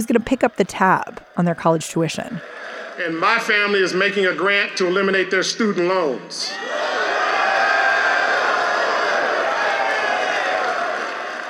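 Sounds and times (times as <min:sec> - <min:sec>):
graduation crowd chanting: 0:00.0 - 0:03.5, 0:06.5 - 0:11.4
speech: 0:00.0 - 0:07.0.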